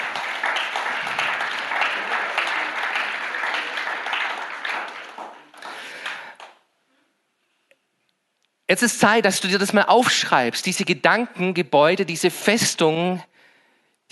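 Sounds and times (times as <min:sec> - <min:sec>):
audience applause: 0:00.0 - 0:06.6
speech: 0:08.7 - 0:13.3.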